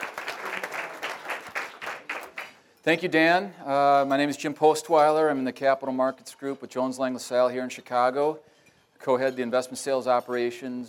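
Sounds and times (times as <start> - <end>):
audience applause: 0.0 - 2.6
speech: 2.8 - 10.8.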